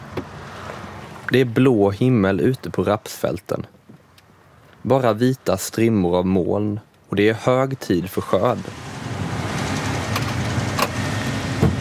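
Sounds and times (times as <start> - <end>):
combine harvester engine rumbling: 0.0 - 11.7
speech: 1.3 - 3.8, 4.8 - 8.8
combine harvester cab door shutting: 10.1 - 11.7.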